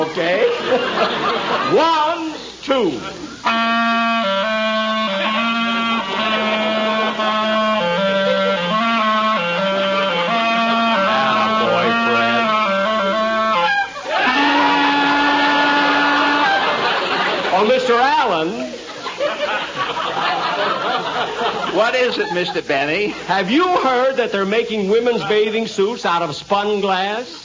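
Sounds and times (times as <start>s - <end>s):
laughter: 0.0s - 3.5s, 5.0s - 24.2s
speech: 0.2s - 2.0s, 2.7s - 3.6s, 22.1s - 27.4s
clarinet playing: 3.3s - 17.2s.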